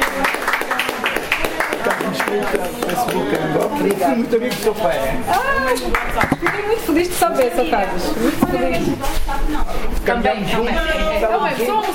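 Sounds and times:
audience applause: 0.0 - 4.0
speech: 2.3 - 11.9.

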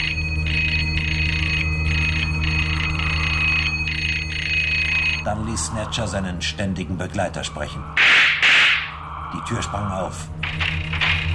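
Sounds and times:
doorbell ringing heard over walkie-talkie: 0.0 - 5.3
speech: 5.2 - 8.4, 9.3 - 10.8.

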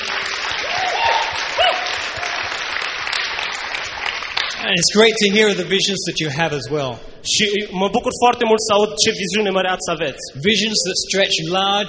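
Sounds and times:
audience applause: 0.0 - 4.6
speech: 4.6 - 11.8.

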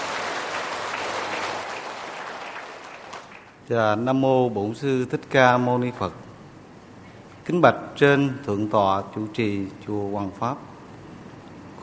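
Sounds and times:
audience applause: 0.0 - 3.6
speech: 3.7 - 6.2, 7.5 - 10.7.

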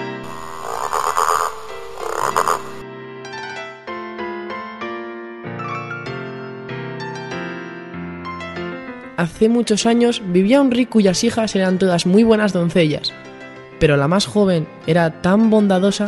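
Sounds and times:
frog croaking: 0.2 - 2.8
speech: 9.2 - 16.0.

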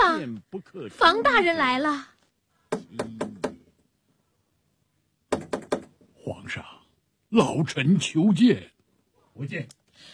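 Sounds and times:
speech: 0.3 - 2.1, 2.7 - 3.3, 6.3 - 6.7, 7.3 - 8.7, 9.4 - 10.1
knocking on the door of a closed palace chamber: 2.7 - 3.7, 5.3 - 6.0.

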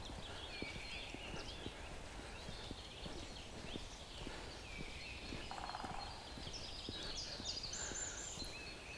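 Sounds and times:
woodpecker drumming in a forest of dead conifers: 0.0 - 8.8.

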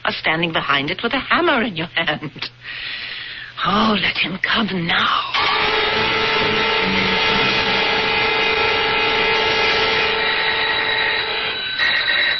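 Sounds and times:
speech: 0.1 - 7.6
doorbell buzzer in a radio drama: 5.4 - 12.3.

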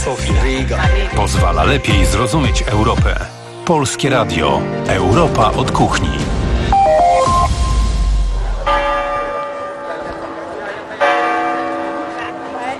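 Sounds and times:
speech: 0.0 - 6.4
clock tower bell in Dubrovnik tolling: 7.0 - 12.7.

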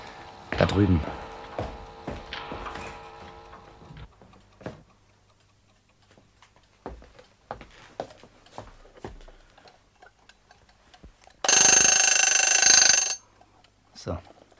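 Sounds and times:
alarm clock in a bedroom being set back one hour: 0.2 - 7.5, 9.5 - 14.5
speech: 0.7 - 1.2
loud harsh alarm clock bell ringing: 11.5 - 13.2.

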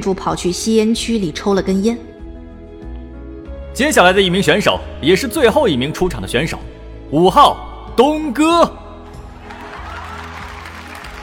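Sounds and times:
speech: 0.0 - 2.1, 3.8 - 8.8
pulsing low music track: 0.0 - 11.2
crowd clapping at a singing competition: 9.4 - 11.2.

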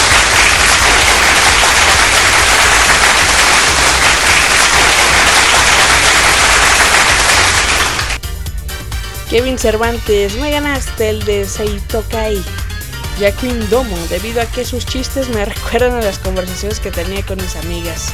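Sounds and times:
applause: 0.0 - 8.2
speech: 9.3 - 12.6, 13.2 - 18.1.

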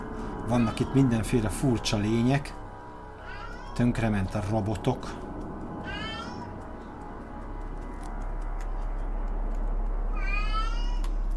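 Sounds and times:
steady continuous sound: 0.0 - 11.3
speech: 0.5 - 2.6, 3.8 - 5.2
cat meowing in a cat video game: 3.2 - 3.9, 5.8 - 6.6, 10.1 - 11.2.

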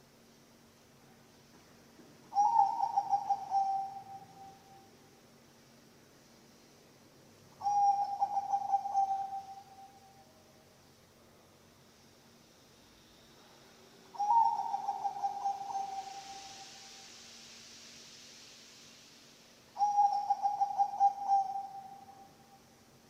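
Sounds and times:
zebra dove cooing: 2.3 - 4.3, 7.6 - 9.7, 14.2 - 16.6, 19.8 - 22.0.

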